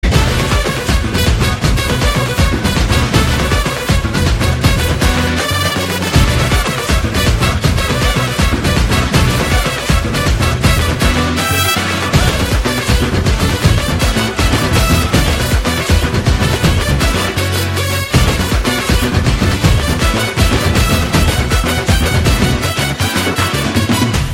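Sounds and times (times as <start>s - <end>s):
background music: 0.0s - 24.3s.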